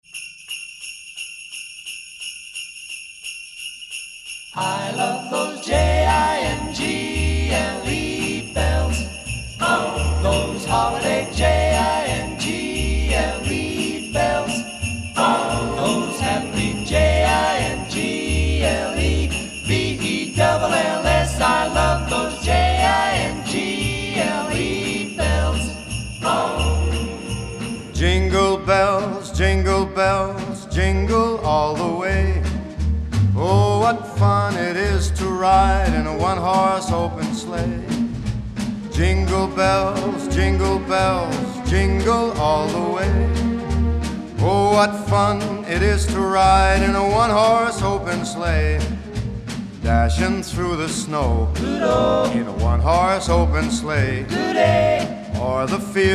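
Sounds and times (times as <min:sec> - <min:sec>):
Christmas song: 0:00.0 - 0:56.1.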